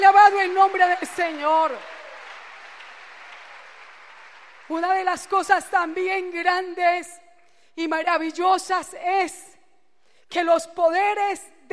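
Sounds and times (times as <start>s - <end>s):
speech: 0.0s - 2.0s, 4.7s - 7.2s, 7.8s - 9.5s, 10.3s - 11.7s
church congregation applauding during a Spanish-language sermon: 0.0s - 6.3s.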